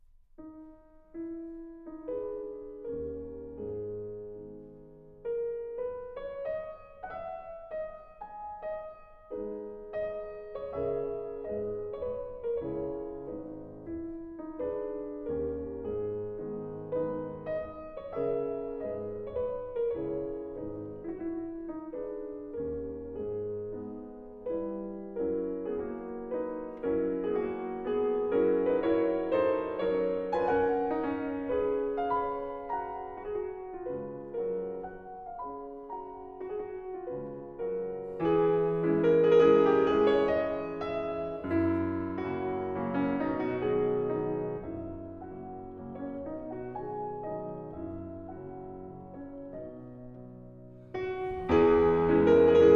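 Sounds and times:
slow piano mazurka in G sharp minor: 0:00.0 - 0:52.7.

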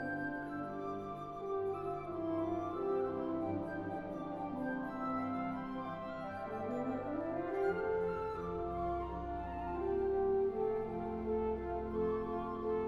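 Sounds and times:
suite for orchestra: 0:00.0 - 0:12.8.

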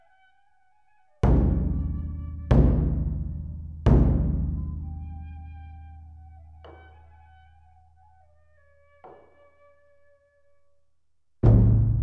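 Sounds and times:
O-Daiko big drum hits: 0:01.2 - 0:05.1, 0:11.5 - 0:12.0.

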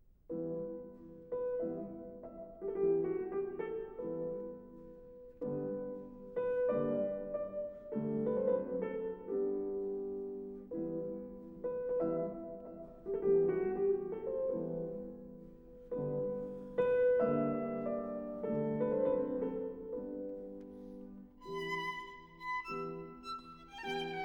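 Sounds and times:
variations for flute and piano in E minor: 0:00.0 - 0:24.2.

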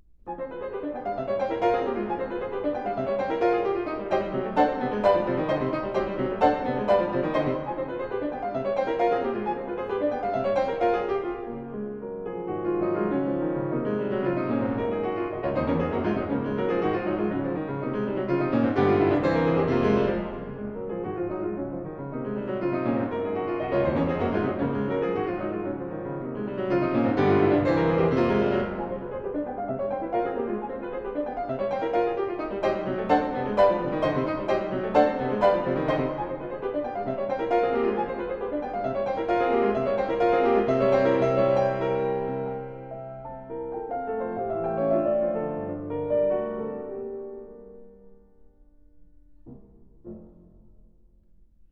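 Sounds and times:
piano piece: 0:00.0 - 0:51.7.

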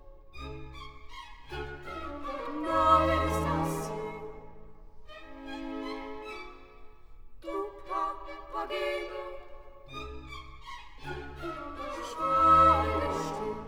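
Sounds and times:
opera trio singing: 0:02.2 - 0:04.6, 0:07.4 - 0:10.0, 0:11.3 - 0:13.6.

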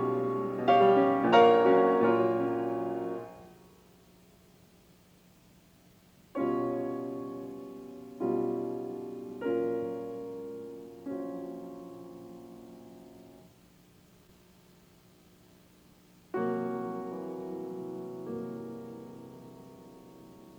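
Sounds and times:
piano: 0:00.0 - 0:04.2, 0:06.3 - 0:13.9, 0:16.3 - 0:20.5.

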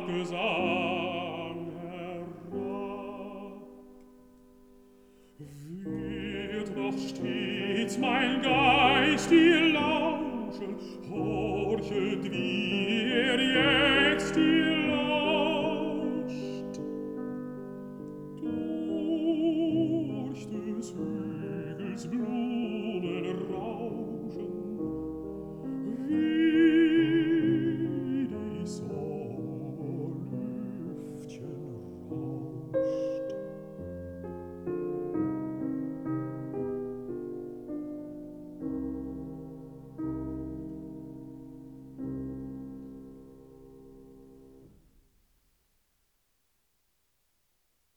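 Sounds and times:
person singing: 0:00.0 - 0:03.9, 0:05.4 - 0:17.1, 0:18.3 - 0:33.8
piano: 0:00.0 - 0:45.7.

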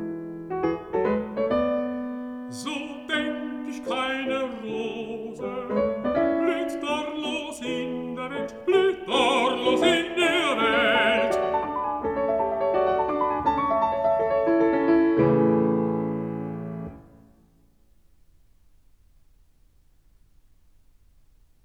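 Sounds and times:
piano: 0:00.0 - 0:21.6
person singing: 0:02.5 - 0:11.8.

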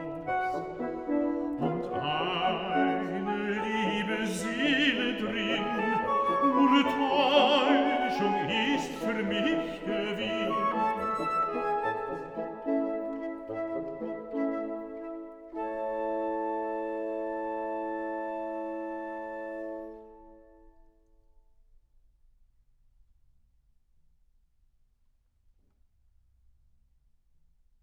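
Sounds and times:
person singing a song cycle: 0:00.0 - 0:12.8
piano: 0:00.0 - 0:20.8.

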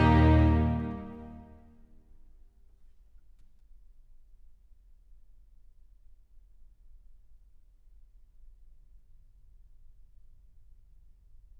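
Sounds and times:
cello: 0:00.0 - 0:01.5
continuo: 0:00.0 - 0:01.6
strings: 0:00.0 - 0:01.6.

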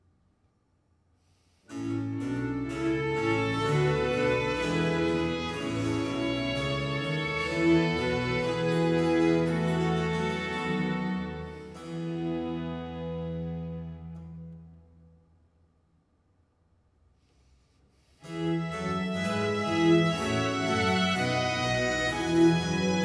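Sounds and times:
concerto grosso in B flat major: 0:01.7 - 0:14.8, 0:18.2 - 0:23.0.

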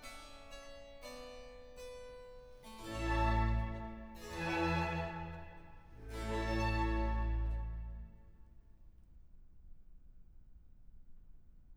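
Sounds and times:
trumpet, strings and continuo slow movement: 0:02.8 - 0:08.3.

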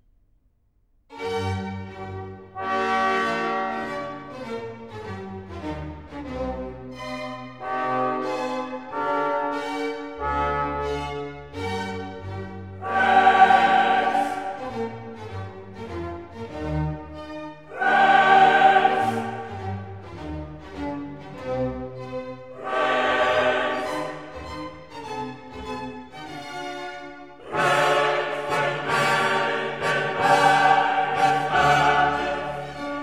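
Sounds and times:
orchestra playing a requiem: 0:02.0 - 0:16.5, 0:17.6 - 0:26.4, 0:27.0 - 0:33.0
soloists singing a requiem: 0:12.8 - 0:14.7, 0:17.7 - 0:19.7, 0:22.5 - 0:24.4, 0:27.4 - 0:33.0.

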